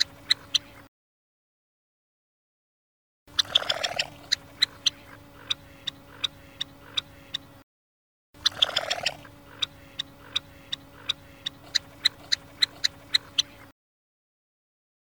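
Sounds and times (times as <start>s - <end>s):
female red-necked phalarope calling: 0.0s - 0.9s, 3.3s - 7.6s, 8.4s - 13.7s.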